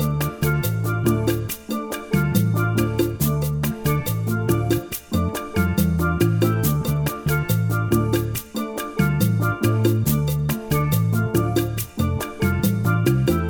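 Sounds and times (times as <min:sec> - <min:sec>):
one chord calypso backing track in D minor: 0:00.0 - 0:13.4.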